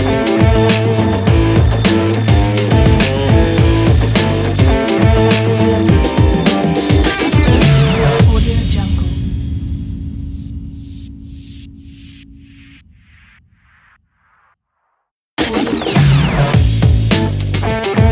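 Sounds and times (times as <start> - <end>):
rock beat on a sports drum kit: 0.0 - 10.0, 15.4 - 18.0.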